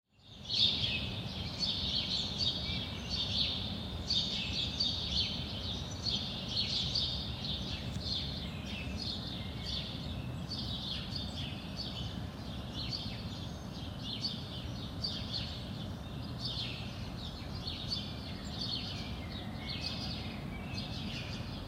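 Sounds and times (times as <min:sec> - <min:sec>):
birds: 0:00.2 - 0:21.6.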